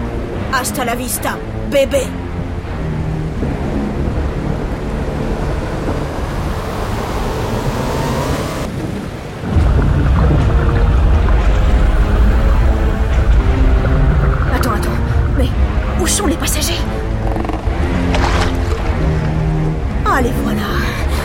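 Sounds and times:
lifeboat rowing through waves: 0.0 - 21.2
speech: 0.6 - 2.2
thunder rumbling during a storm at sea: 1.5 - 21.2.

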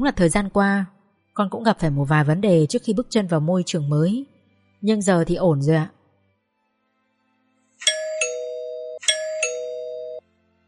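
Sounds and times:
speech: 0.0 - 6.0
gate doorbell ringing: 7.8 - 10.2.

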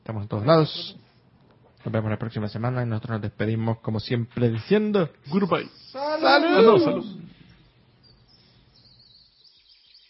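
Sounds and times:
speech: 0.1 - 1.0, 1.8 - 7.2
birds chirping: 5.7 - 10.0.

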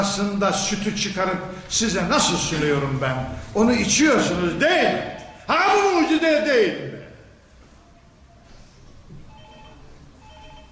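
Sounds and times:
speech: 0.0 - 7.0
telephone ringing: 9.3 - 10.7.

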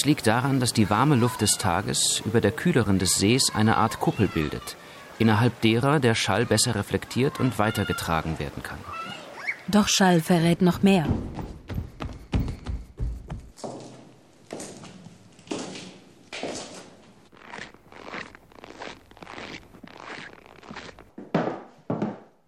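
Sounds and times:
speech: 0.0 - 11.5
shoe soles running down wooden stairs: 11.1 - 16.8, 21.2 - 22.4.

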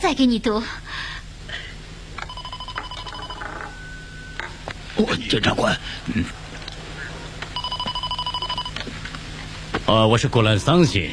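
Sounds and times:
speech: 0.0 - 1.1, 5.0 - 6.4, 9.9 - 11.1
low hum: 0.0 - 11.1
telephone ringing: 2.2 - 4.8, 7.6 - 9.0.

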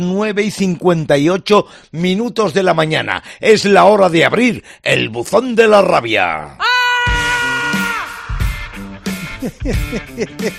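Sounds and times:
speech: 0.0 - 6.7, 9.4 - 10.5
short choppy shouted bursts in a radio jingle: 6.6 - 8.7
harrowing scream in a radio segment jingle: 6.6 - 8.8
laughter: 9.1 - 10.5.

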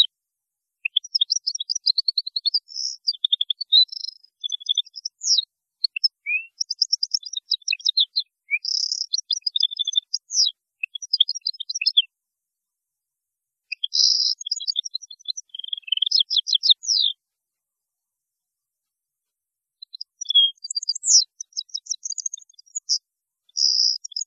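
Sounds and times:
European goldfinch song: 0.8 - 12.1, 13.7 - 17.2, 19.8 - 24.2.

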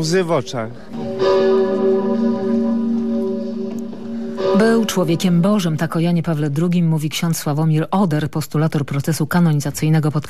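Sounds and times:
speech: 0.0 - 2.6, 4.6 - 10.2
Sigismund Bell, a large cathedral bell, tolling on a feast day: 0.0 - 6.6.

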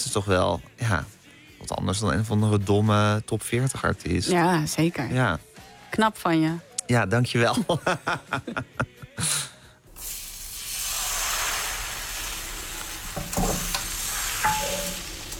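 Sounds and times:
speech: 0.1 - 9.5
laughter: 7.5 - 9.5
pancake batter sizzling in frying pan: 9.9 - 15.3.

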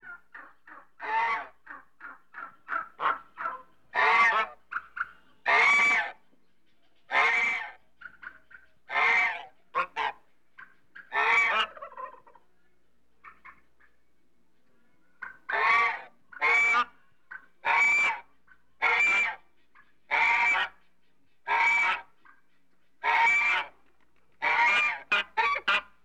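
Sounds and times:
African goose honking: 1.0 - 1.6, 2.4 - 6.2, 7.1 - 7.8, 8.9 - 10.2, 11.0 - 12.2, 15.2 - 17.0, 17.6 - 19.4, 20.1 - 20.8, 21.5 - 22.1, 23.0 - 23.8, 24.4 - 26.0.

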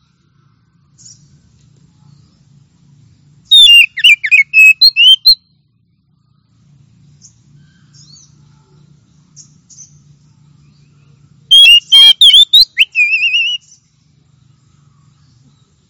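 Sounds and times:
Oriental magpie-robin singing: 3.5 - 5.4, 9.2 - 15.6.

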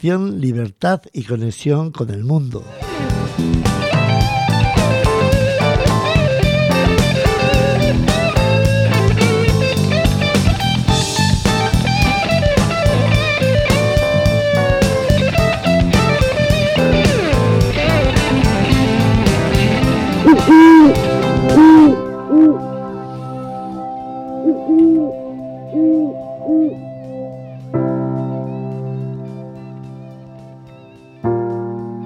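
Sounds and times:
speech: 0.0 - 3.5
dense burst of music: 2.6 - 32.0
quieter sustained tonal backdrop: 17.9 - 30.6
owl hooting in soft low rounded calls: 20.2 - 22.6, 24.4 - 26.9.

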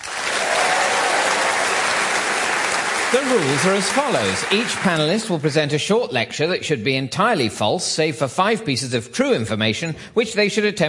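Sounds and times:
studio audience applause welcoming comedy panel show panellists: 0.0 - 5.4
speech: 3.1 - 10.8.

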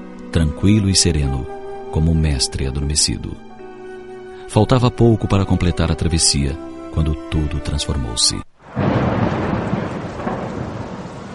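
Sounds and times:
speech: 0.4 - 3.5, 4.5 - 8.5
heavy continuous roll of thunder in a windy storm over the Lake of Gennesaret: 8.6 - 11.3.

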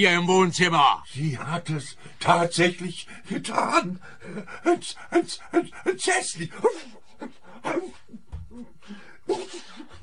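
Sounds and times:
speech: 0.0 - 8.0, 8.6 - 10.0
person sneezing: 9.3 - 10.0.

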